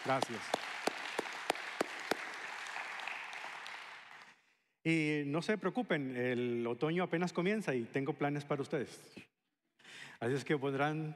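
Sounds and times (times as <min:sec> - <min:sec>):
speech: 0:00.0 - 0:00.6, 0:04.8 - 0:09.3, 0:10.2 - 0:11.1
audience applause: 0:00.0 - 0:04.4.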